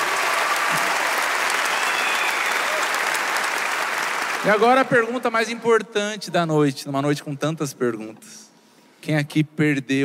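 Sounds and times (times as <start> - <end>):
audience applause at a comedy show venue: 0.0 - 5.3
speech: 4.4 - 8.4, 9.0 - 10.0.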